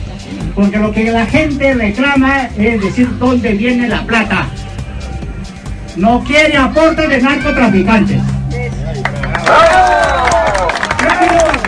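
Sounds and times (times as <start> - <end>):
speech: 0.2 - 4.6, 6.0 - 8.3, 8.9 - 10.2
crowd cheering and shouting: 6.9 - 11.6
crowd clapping: 9.0 - 11.6.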